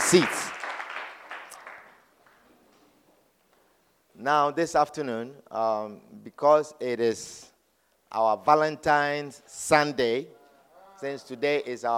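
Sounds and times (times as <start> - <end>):
audience clapping hands: 0.0 - 2.5
speech: 0.1 - 0.4, 4.2 - 7.5, 8.1 - 10.4, 11.0 - 11.9.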